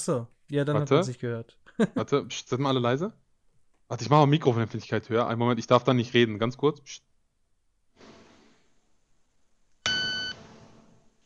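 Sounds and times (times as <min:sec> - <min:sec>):
speech: 0:00.0 - 0:03.2, 0:03.9 - 0:07.1
loud electronic beep: 0:09.8 - 0:10.4.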